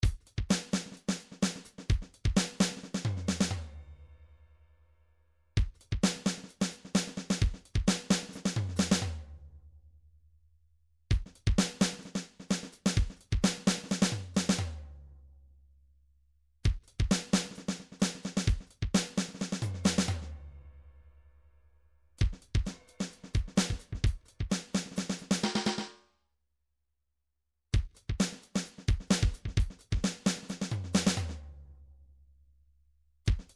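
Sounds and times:
MIDI drum pattern: 0.0s - 3.6s, 5.6s - 9.2s, 11.1s - 14.8s, 16.6s - 20.3s, 22.2s - 26.0s, 27.8s - 31.4s, 33.3s - 33.5s.

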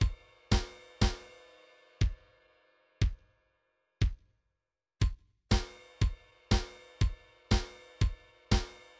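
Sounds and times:
MIDI drums: 0.0s - 2.4s, 3.0s - 3.3s, 4.0s - 4.3s, 5.0s - 8.9s.

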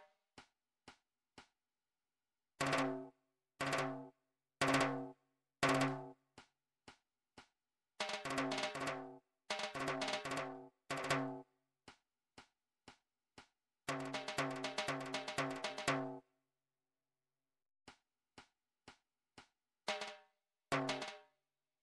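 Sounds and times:
drum track: 2.6s - 3.1s, 4.6s - 6.2s, 8.0s - 11.4s, 13.9s - 16.2s, 20.8s - 21.2s.

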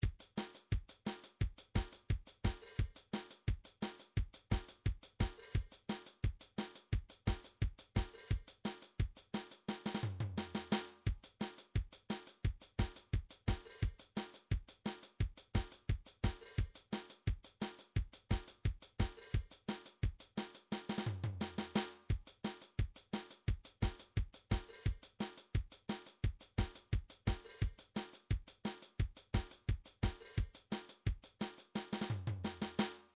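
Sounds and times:
ska drums: 0.0s - 33.1s.

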